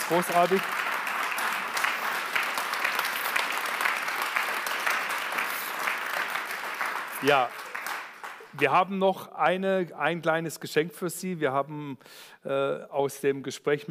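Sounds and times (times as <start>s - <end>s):
audience applause: 0.0s - 8.9s
speech: 0.1s - 0.9s, 7.2s - 7.6s, 8.5s - 13.9s.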